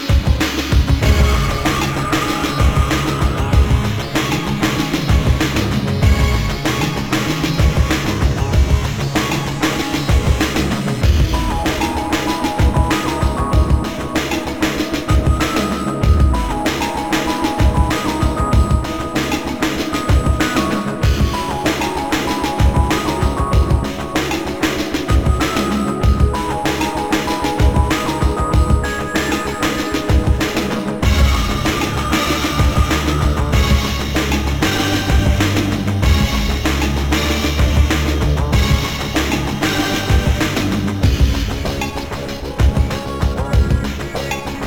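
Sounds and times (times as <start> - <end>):
boss level game music: 0.1 - 44.6.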